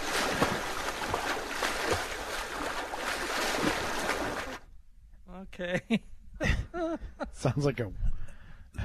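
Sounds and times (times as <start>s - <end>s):
swimming pool water sloshing and splashing: 0.0s - 4.7s
speech: 5.6s - 6.1s, 7.4s - 8.2s.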